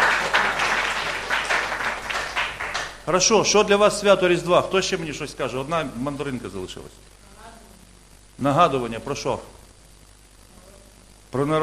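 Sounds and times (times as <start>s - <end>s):
gentle applause from a group greeting a birthday: 0.0s - 3.1s
speech: 3.1s - 7.2s, 8.4s - 9.6s, 11.3s - 11.6s.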